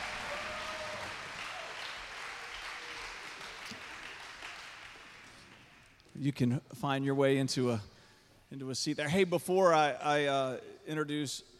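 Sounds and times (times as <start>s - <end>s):
church congregation clapping for children during a service: 0.0s - 6.1s
speech: 6.2s - 7.9s, 8.5s - 11.5s.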